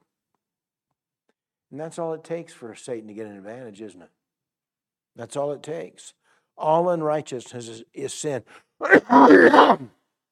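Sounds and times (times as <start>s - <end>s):
speech: 1.7s - 4.2s, 5.2s - 10.0s
loud cough: 8.8s - 9.9s.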